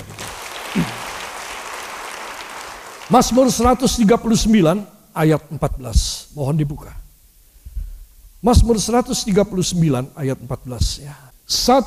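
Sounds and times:
audience applauding: 0.0s - 3.8s
speech: 3.1s - 7.0s, 8.4s - 11.8s.

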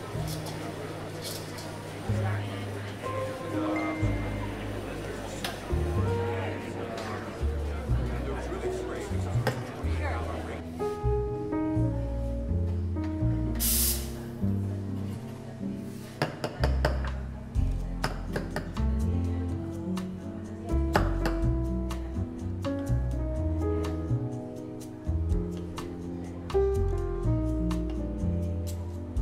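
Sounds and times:
murmured voices in a coffee shop: 0.0s - 10.7s
music in a coffee shop: 0.0s - 29.2s
sharp hiss: 13.6s - 14.3s.

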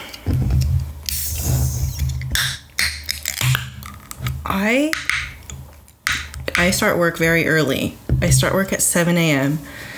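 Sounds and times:
opening a drink can: 0.0s - 6.5s
speech: 4.5s - 5.1s, 6.6s - 9.9s.

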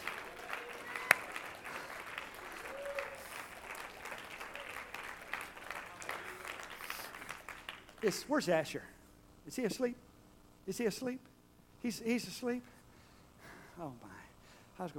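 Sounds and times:
audience shouting: 0.0s - 1.5s
audience clapping: 0.0s - 8.4s
speech: 8.0s - 8.9s, 9.5s - 12.8s, 13.8s - 14.2s, 14.8s - 14.9s.

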